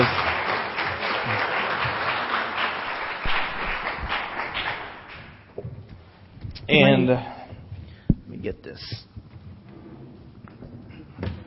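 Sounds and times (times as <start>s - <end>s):
audience applause: 0.0s - 5.5s
speech: 6.7s - 7.4s, 8.4s - 9.1s.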